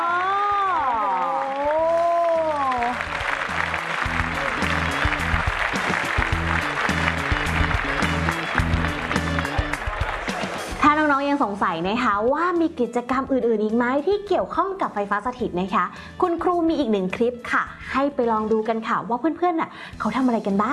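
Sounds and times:
person shouting: 0:00.0 - 0:03.0
crowd clapping and cheering: 0:00.0 - 0:11.9
steady rhythmic beat: 0:02.8 - 0:11.1
speech: 0:11.6 - 0:20.7.

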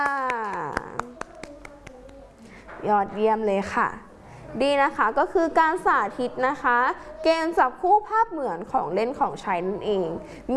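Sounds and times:
sparse clapping for a child after a matching-picture game: 0:00.0 - 0:02.2
speech: 0:02.8 - 0:10.5.

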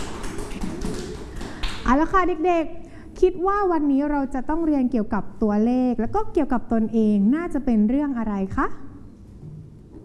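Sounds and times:
children clapping for themselves: 0:00.0 - 0:01.9
speech: 0:01.9 - 0:08.9.

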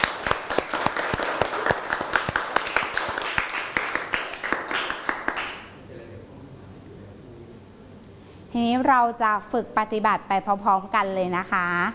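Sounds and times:
group applauding: 0:00.0 - 0:05.8
speech: 0:08.6 - 0:11.9.

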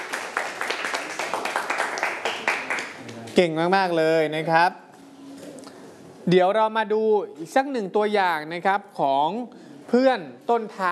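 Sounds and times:
class clapping: 0:00.0 - 0:03.4
speech: 0:03.4 - 0:04.8, 0:06.3 - 0:10.9.

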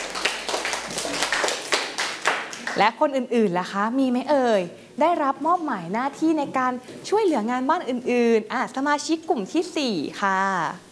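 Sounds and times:
children clapping for a classmate in a classroom: 0:00.0 - 0:02.8
speech: 0:02.8 - 0:10.8.

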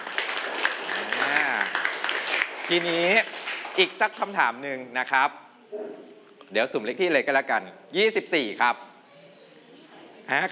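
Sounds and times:
classroom clapping for a classmate: 0:00.0 - 0:04.2
speech: 0:02.7 - 0:08.9, 0:10.3 - 0:10.4.

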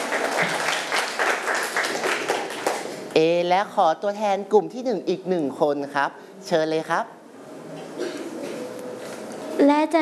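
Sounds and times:
students clapping: 0:00.0 - 0:03.1
speech: 0:03.2 - 0:07.8, 0:09.6 - 0:09.9.

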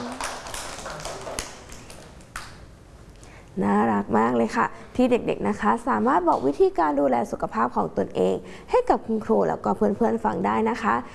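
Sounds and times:
children clapping: 0:00.0 - 0:02.6
speech: 0:03.6 - 0:11.1.

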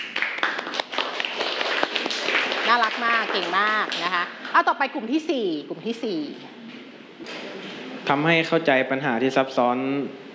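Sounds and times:
classmates clapping for a group presenting in a school class: 0:00.0 - 0:04.7
speech: 0:02.7 - 0:06.6, 0:08.0 - 0:10.3.

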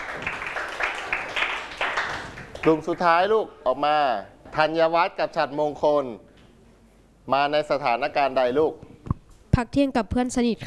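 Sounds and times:
classroom students clapping for a classmate: 0:00.0 - 0:03.1
speech: 0:02.6 - 0:06.3, 0:07.2 - 0:08.9, 0:09.6 - 0:10.6.

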